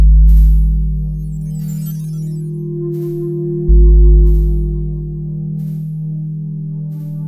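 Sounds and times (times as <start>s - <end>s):
music loop: 0.2s - 5.4s.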